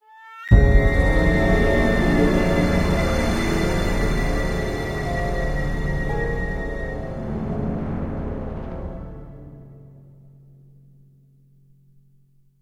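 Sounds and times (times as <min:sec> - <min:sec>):
uneasy music sting: 0:00.5 - 0:09.7.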